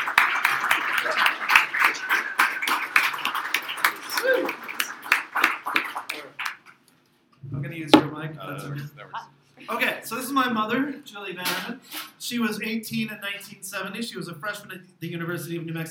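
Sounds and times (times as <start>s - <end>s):
audience clapping: 0.0s - 6.8s
speech: 10.3s - 15.8s.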